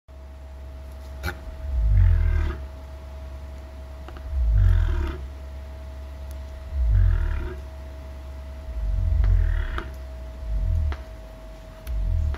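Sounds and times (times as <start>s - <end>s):
cassowaries: 1.2s - 2.8s, 4.1s - 5.3s, 6.7s - 7.7s, 8.7s - 11.0s.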